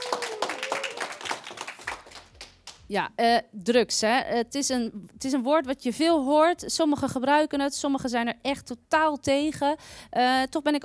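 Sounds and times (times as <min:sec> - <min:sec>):
audience applause: 0:00.0 - 0:02.8
speech: 0:02.9 - 0:10.8.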